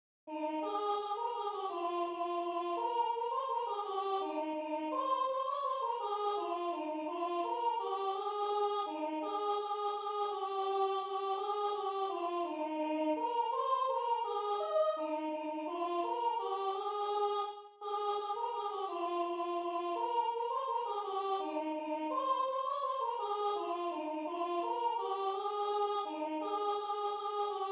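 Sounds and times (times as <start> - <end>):
soprano singing: 0.3 - 27.7.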